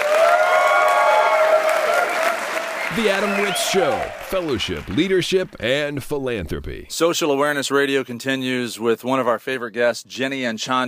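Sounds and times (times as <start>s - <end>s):
audience applause: 0.0s - 5.8s
speech: 3.0s - 10.8s.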